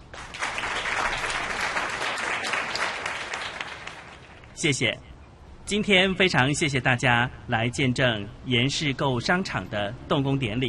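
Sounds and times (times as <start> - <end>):
audience applause: 0.0 - 4.4
speech: 4.6 - 5.1, 5.7 - 10.6.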